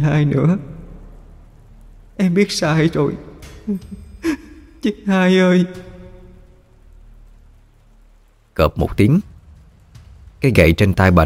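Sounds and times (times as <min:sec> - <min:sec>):
speech: 0:00.0 - 0:00.7, 0:02.2 - 0:05.9, 0:08.6 - 0:09.3, 0:10.4 - 0:11.2
heavy rain falling: 0:00.0 - 0:11.2.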